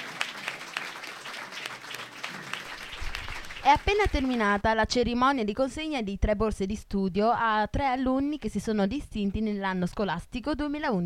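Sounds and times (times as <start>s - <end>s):
audience applause: 0.0s - 4.6s
speech: 3.6s - 11.0s.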